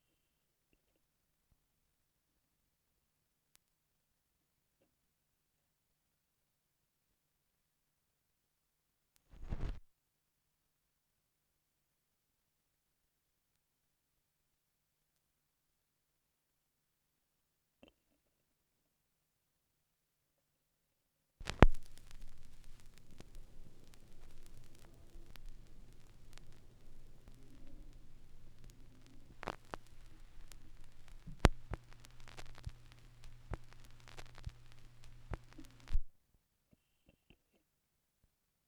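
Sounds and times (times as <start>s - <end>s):
vinyl record noise: 9.3s - 9.8s, 21.4s - 36.1s.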